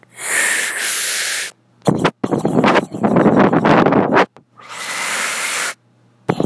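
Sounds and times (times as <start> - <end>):
person imitating scuba breathing with bubbles: 0.0 - 3.5, 4.6 - 5.8.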